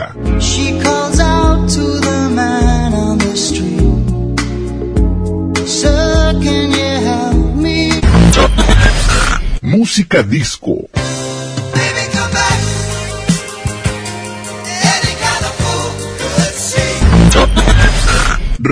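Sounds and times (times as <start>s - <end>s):
adult contemporary hit music: 0.2s - 9.6s, 11.0s - 18.6s.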